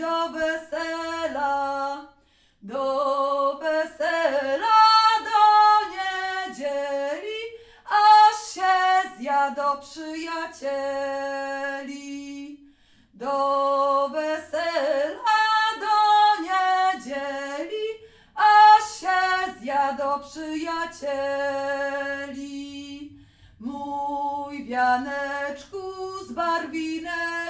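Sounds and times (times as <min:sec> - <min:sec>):
wedding folk song: 0:00.0 - 0:27.4.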